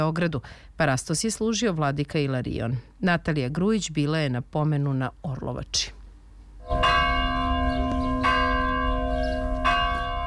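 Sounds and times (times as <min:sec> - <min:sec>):
speech: 0:00.0 - 0:06.0
church bell tolling at memorial service: 0:06.6 - 0:10.2.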